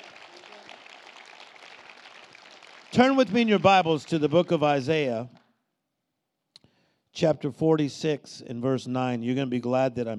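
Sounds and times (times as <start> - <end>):
church congregation clapping hands: 0.0 - 5.5
speech: 2.9 - 5.4, 7.2 - 10.1.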